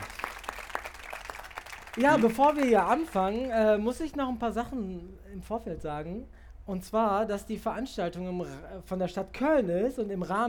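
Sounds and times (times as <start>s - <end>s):
audience applause: 0.0s - 3.2s
speech: 2.0s - 10.4s.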